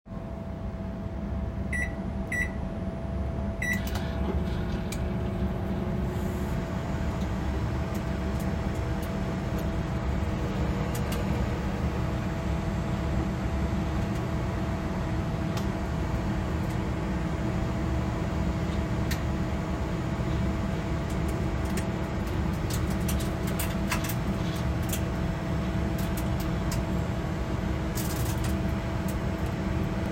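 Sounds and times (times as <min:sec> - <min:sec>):
microwave: 0:00.1 - 0:30.1.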